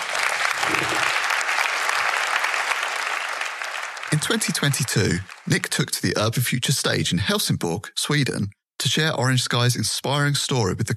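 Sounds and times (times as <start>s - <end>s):
audience applause: 0.0s - 6.4s
speech: 4.1s - 10.9s.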